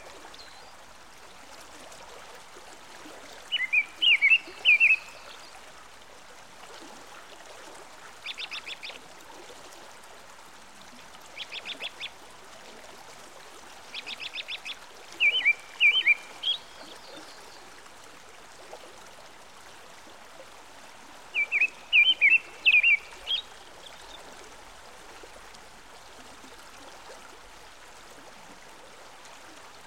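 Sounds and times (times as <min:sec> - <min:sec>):
American robin song by a stream: 0:03.5 - 0:05.5, 0:14.0 - 0:17.6, 0:21.3 - 0:24.1.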